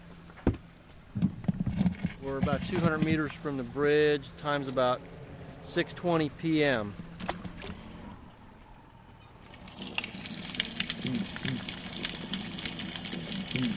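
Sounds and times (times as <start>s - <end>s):
steady low hum: 0.0s - 13.7s
speech: 2.3s - 7.0s
snapping shrimp crackling underwater: 9.5s - 13.7s.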